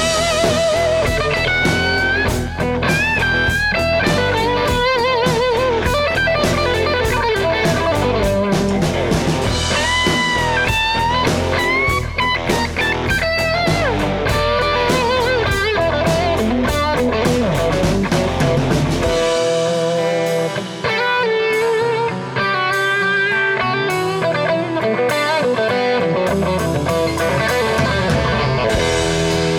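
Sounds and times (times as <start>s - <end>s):
Gibson Les Paul Special electric guitar with P90 pickups: 0.0s - 29.5s.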